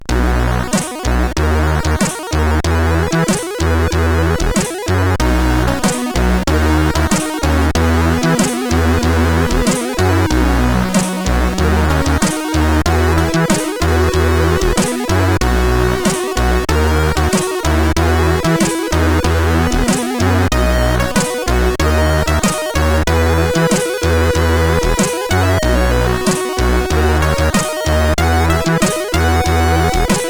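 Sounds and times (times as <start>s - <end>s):
SID CSG8580R5 chip music: 0.1s - 30.2s.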